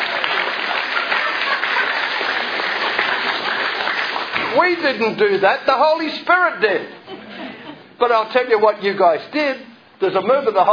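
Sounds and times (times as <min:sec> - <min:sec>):
laughter: 0:00.0 - 0:03.6, 0:06.9 - 0:08.0
audience applause, clapping hands: 0:00.0 - 0:04.7
speech: 0:04.6 - 0:07.0, 0:08.0 - 0:10.7.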